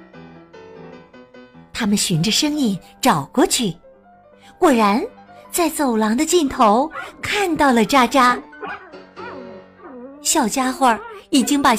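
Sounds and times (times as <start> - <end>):
speech: 1.8 - 3.8, 4.6 - 8.5, 10.3 - 11.7
small dog barking: 6.9 - 7.2, 8.6 - 10.2, 10.9 - 11.6.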